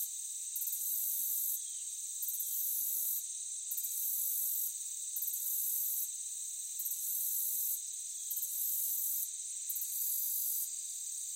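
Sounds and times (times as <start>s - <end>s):
crickets chorus in a meadow: 0.0s - 11.3s.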